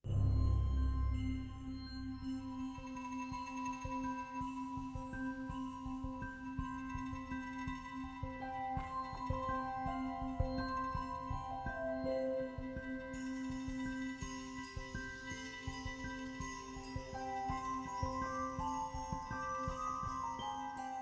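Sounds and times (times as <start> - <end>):
music: 0.0 - 21.0.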